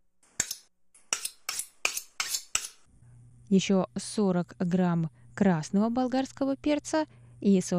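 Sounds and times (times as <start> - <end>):
chopping red onion into pieces: 0.4 - 2.8
speech: 3.5 - 7.7.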